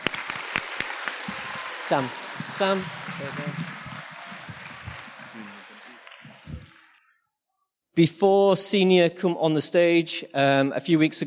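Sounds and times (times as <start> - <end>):
audience clapping hands: 0.0 - 7.0
speech: 1.9 - 3.7, 8.0 - 11.2.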